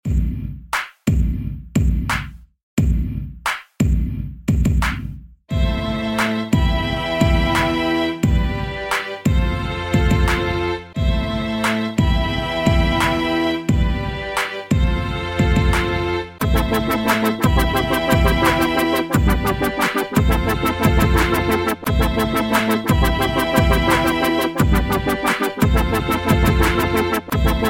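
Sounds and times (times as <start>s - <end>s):
rap beat: 0.0s - 27.6s.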